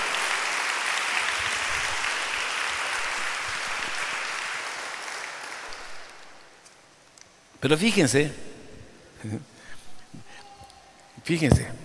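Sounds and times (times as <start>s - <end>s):
crowd applause: 0.0s - 6.4s
speech: 7.6s - 8.5s, 9.2s - 9.5s, 11.2s - 11.8s.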